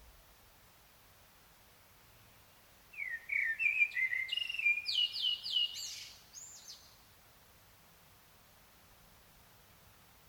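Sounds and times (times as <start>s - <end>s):
common blackbird singing: 3.0s - 6.9s.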